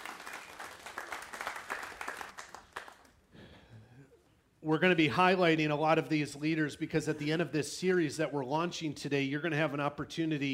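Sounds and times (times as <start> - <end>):
audience applause: 0.0 - 3.2
speech: 4.6 - 10.5.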